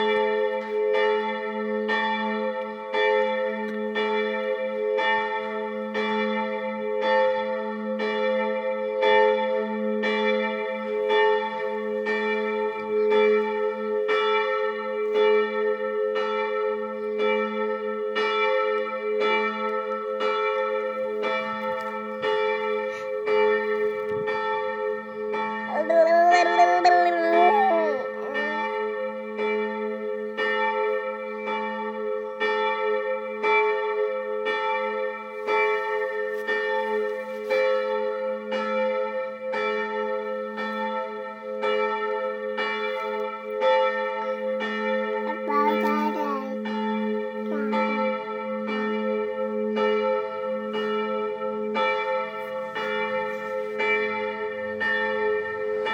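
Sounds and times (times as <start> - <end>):
7 pm church bells ringing: 0.0 - 55.9
person commenting: 25.7 - 28.5, 45.4 - 46.6.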